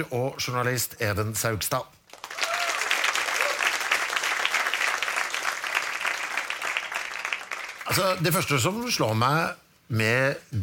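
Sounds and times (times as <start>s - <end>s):
speech: 0.0s - 2.0s, 7.9s - 10.6s
audience applause: 2.1s - 8.2s.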